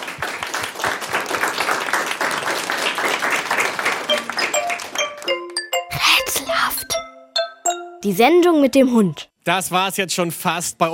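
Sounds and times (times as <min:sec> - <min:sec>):
class applauding: 0:00.0 - 0:06.1
speech: 0:08.0 - 0:10.9.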